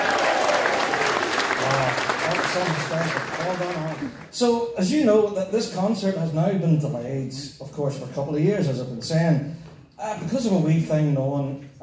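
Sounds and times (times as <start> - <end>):
audience cheering: 0.0 - 4.3
speech: 2.6 - 11.7.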